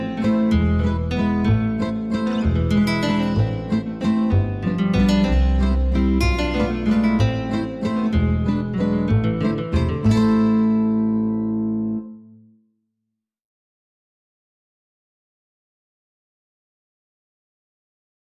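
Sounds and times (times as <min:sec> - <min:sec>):
gipsy waltz accompaniment only: 0:00.0 - 0:12.1.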